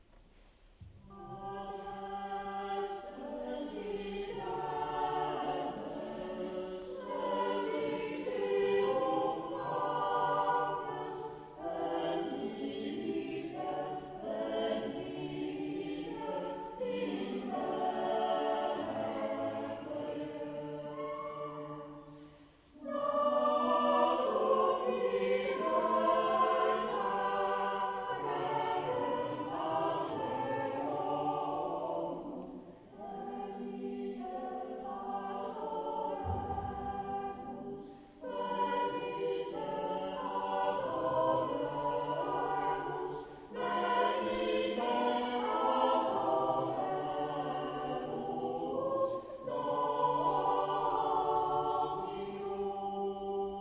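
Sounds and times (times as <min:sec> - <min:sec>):
Christmas carol concert: 0:00.0 - 0:53.5.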